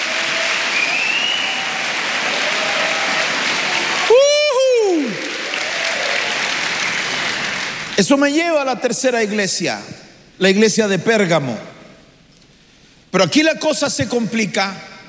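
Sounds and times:
audience clapping hands: 0:00.0 - 0:08.0
speech: 0:08.0 - 0:11.7, 0:13.2 - 0:14.9.

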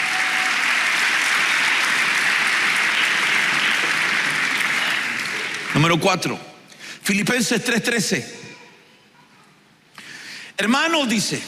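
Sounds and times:
audience applause: 0:00.0 - 0:06.2
speech: 0:05.8 - 0:06.5, 0:07.1 - 0:08.5, 0:10.6 - 0:11.4.

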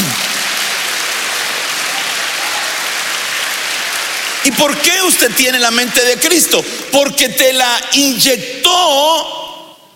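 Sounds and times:
audience clapping hands: 0:00.0 - 0:07.2
speech: 0:04.4 - 0:09.4.

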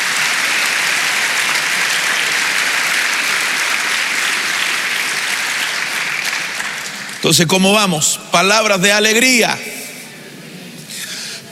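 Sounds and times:
audience clapping hands: 0:00.0 - 0:07.6
speech: 0:07.3 - 0:09.7.

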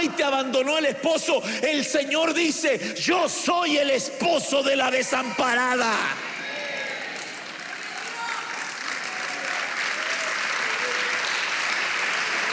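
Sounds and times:
speech: 0:00.1 - 0:06.3
audience clapping hands: 0:06.3 - 0:12.5.

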